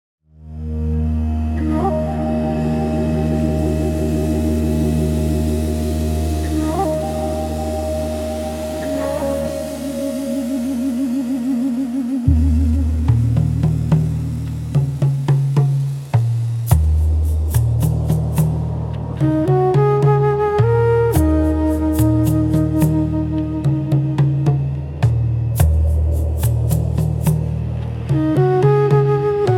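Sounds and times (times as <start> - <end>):
lush ambient exploration soundtrack: 0.3 - 29.5.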